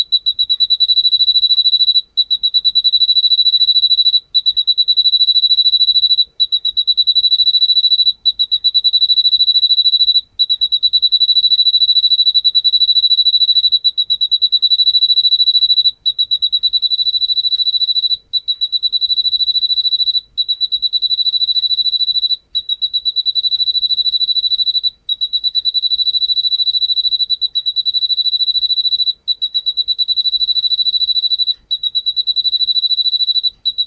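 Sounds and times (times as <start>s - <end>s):
Ryukyu pine cricket chirping: 0.0s - 33.8s.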